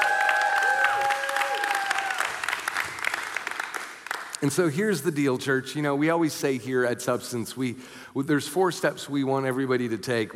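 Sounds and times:
audience applause: 0.0s - 4.4s
speech: 4.4s - 10.3s.

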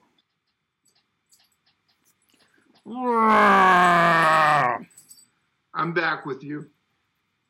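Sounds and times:
speech: 2.8s - 3.6s, 5.9s - 6.8s
cat yowling: 3.2s - 4.8s.

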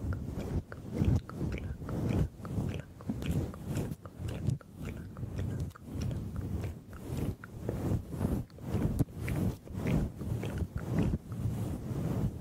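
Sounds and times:
gentle microphone scratching and swirling: 0.0s - 12.3s.

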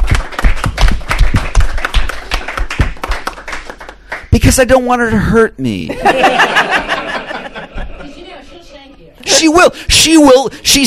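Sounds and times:
audience applause: 0.0s - 4.2s
speech: 4.4s - 7.1s, 9.3s - 10.8s
laughter: 5.9s - 8.6s.

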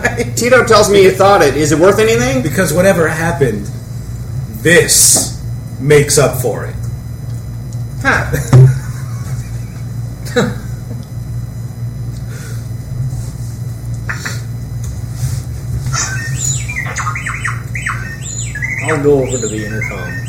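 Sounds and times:
steady low electrical hum: 0.0s - 20.2s
speech: 0.3s - 3.8s, 4.6s - 6.8s, 8.0s - 8.6s, 10.4s - 10.6s, 18.9s - 20.2s
robot droid beeping and chirping: 15.9s - 20.2s.

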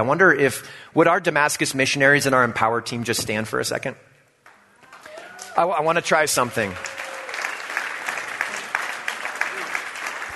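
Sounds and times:
speech: 0.0s - 4.1s, 5.6s - 6.9s
crowd applauding: 4.8s - 10.3s.

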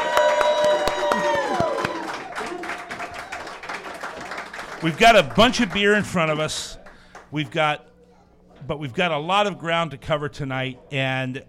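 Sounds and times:
whoops and cheers: 0.0s - 3.6s
audience applause: 0.0s - 7.3s
speech: 4.8s - 7.9s, 8.6s - 11.4s.

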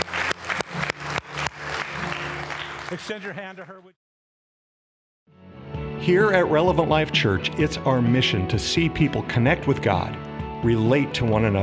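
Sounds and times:
church congregation clapping in sharp evenly spaced claps: 0.0s - 3.8s
speech: 2.9s - 4.0s, 6.0s - 11.6s.

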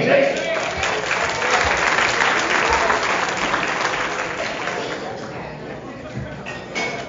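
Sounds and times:
audience applause for comedy MC: 0.2s - 5.5s.

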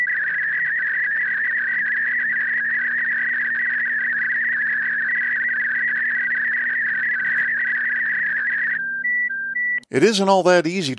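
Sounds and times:
Olivia digital radio signal using four tones: 0.1s - 8.8s
speech: 9.9s - 10.9s.

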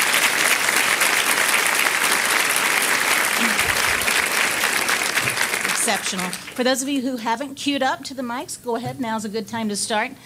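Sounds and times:
round of applause: 0.0s - 6.8s
speech: 5.9s - 10.2s.

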